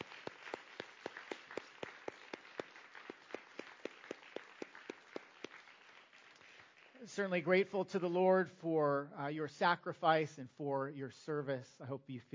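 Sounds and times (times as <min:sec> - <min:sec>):
audience applauding veterans: 0:00.0 - 0:07.1
speech: 0:07.0 - 0:12.3.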